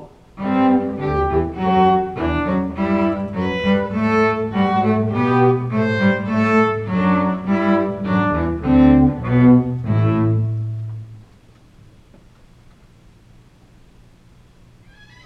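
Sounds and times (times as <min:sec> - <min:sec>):
viola, cello and bass: 0:00.4 - 0:11.2.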